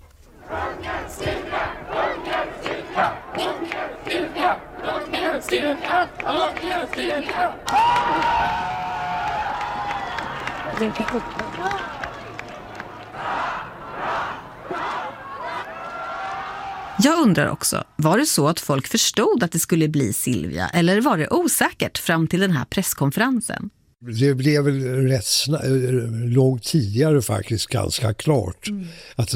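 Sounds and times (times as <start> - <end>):
crowd shouting hurrahs: 0.4 - 17.6
speech: 5.4 - 8.8, 10.8 - 12.0, 17.0 - 29.3.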